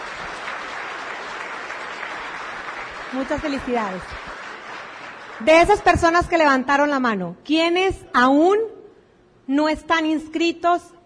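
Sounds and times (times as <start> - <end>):
seminar audience applause at an entrepreneurship event: 0.0 - 5.9
speech: 3.1 - 4.4, 5.4 - 8.7, 9.5 - 11.0.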